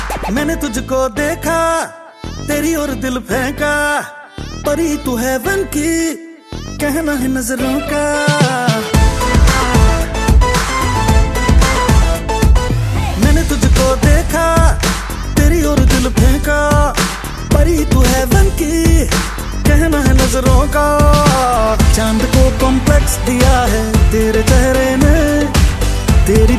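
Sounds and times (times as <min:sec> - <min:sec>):
Hindi song: 0:00.0 - 0:26.5.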